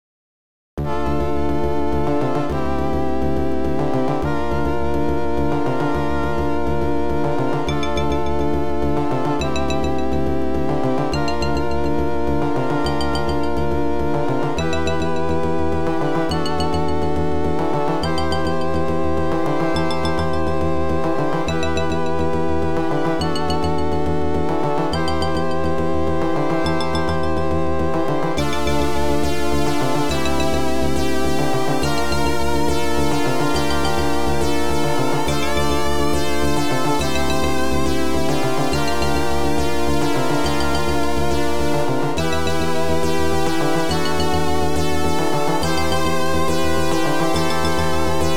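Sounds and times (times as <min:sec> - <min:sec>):
OPL2 FM synth chip music: 0:00.8 - 0:48.3.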